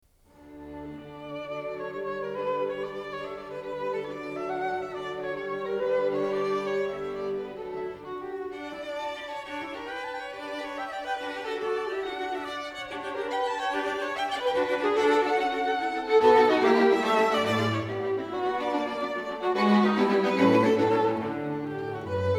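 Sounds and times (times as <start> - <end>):
string quartet playing a lively allegro movement: 0.4 - 22.3.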